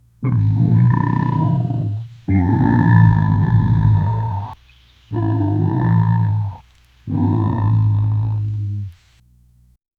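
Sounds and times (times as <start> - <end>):
distant hadrosaurid herd: 0.2 - 9.1.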